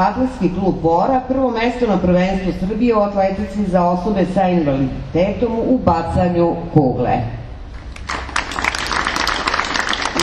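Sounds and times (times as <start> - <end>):
speech: 0.0 - 7.4
audience applause at a ceremony honoring a first-place shot put athlete: 7.9 - 10.2.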